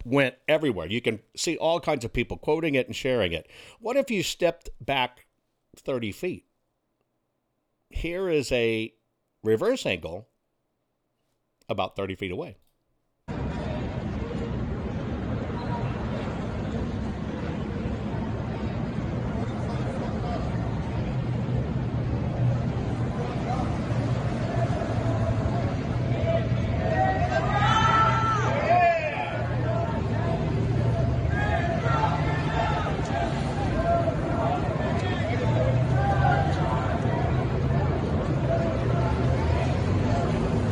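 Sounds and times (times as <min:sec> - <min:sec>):
speech: 0:00.1 - 0:06.5, 0:07.9 - 0:10.3, 0:11.7 - 0:12.6
engine rumble: 0:13.3 - 0:40.7
crowd cheering and applauding motorcade: 0:23.5 - 0:40.5
shouts and whistles: 0:24.3 - 0:37.0.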